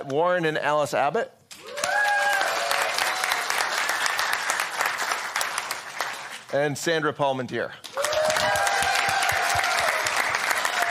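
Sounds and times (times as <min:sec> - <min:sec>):
speech: 0:00.0 - 0:01.4, 0:06.5 - 0:08.6
audience applause: 0:01.6 - 0:06.5, 0:07.9 - 0:10.8.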